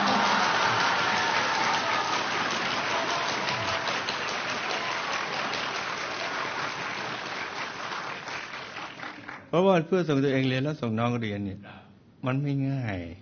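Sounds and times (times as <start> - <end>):
audience clapping: 0.0 - 9.6
speech: 9.5 - 13.2.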